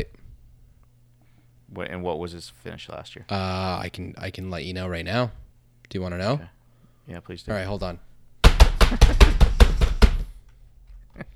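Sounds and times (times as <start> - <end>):
speech: 1.7 - 8.1, 8.9 - 9.5, 11.2 - 11.3
loud computer keyboard typing: 8.4 - 10.3.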